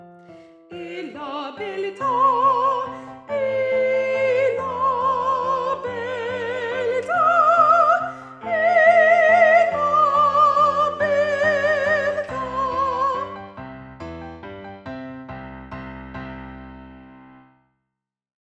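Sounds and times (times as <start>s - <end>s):
soprano singing: 0.3s - 13.6s.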